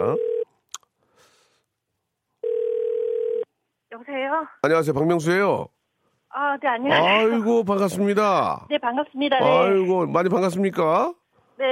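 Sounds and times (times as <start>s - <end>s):
telephone dial tone while placing call: 0.0s - 0.5s, 2.4s - 3.5s
speech: 4.2s - 11.7s.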